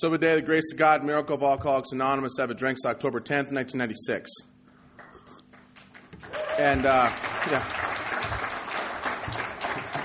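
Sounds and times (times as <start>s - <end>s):
speech: 0.0s - 4.5s, 6.2s - 8.4s
audience applause at an Alcoholics Anonymous meeting: 6.2s - 10.0s.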